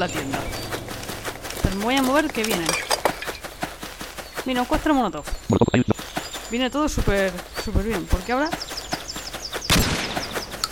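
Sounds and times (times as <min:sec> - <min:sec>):
speech: 0:00.0 - 0:00.6, 0:01.6 - 0:02.9, 0:04.4 - 0:05.9, 0:06.5 - 0:08.6
enemy gunfire in a video game: 0:09.7 - 0:10.6.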